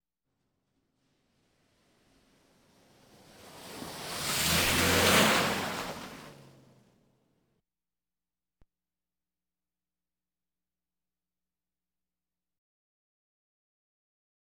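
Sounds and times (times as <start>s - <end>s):
various automobiles: 1.7s - 7.4s.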